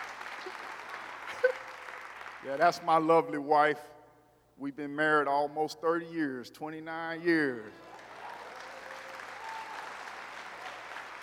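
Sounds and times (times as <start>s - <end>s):
audience applause: 0.0s - 2.5s, 7.8s - 11.2s
speech: 2.4s - 4.0s, 4.6s - 7.9s.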